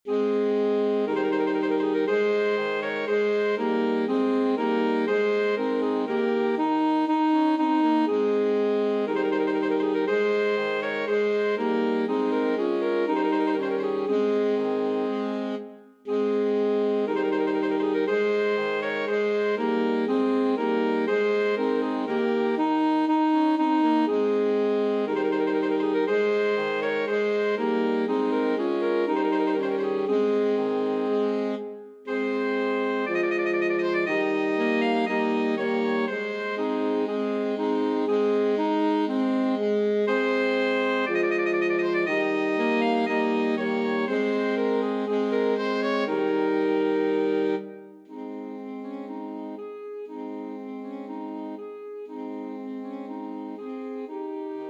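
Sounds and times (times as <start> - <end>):
alto saxophone quartet playing: 0.1 - 54.6.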